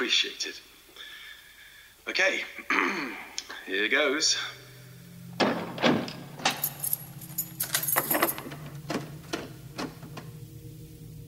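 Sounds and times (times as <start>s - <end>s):
speech: 0.0s - 0.8s, 2.1s - 4.6s
key locking St Mary's Church door in Odstock: 5.4s - 10.4s.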